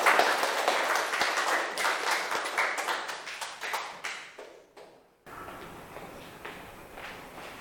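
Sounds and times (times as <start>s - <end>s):
audience applause: 0.0s - 4.3s.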